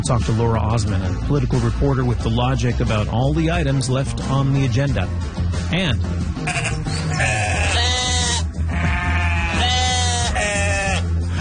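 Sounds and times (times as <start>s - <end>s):
speech: 0.0s - 6.7s
sheep bleating in an apple orchard: 6.4s - 11.1s.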